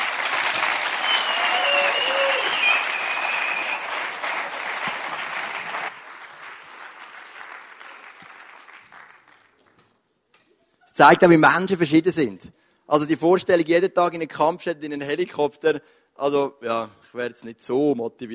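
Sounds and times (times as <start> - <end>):
audience applause: 0.0 - 9.7
speech: 11.0 - 18.3.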